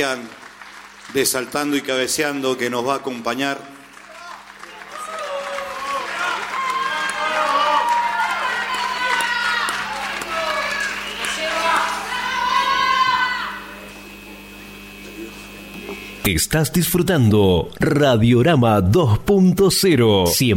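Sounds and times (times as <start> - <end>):
speech: 0.0 - 0.4, 1.1 - 3.8, 16.3 - 20.5
audience applause: 0.0 - 14.4.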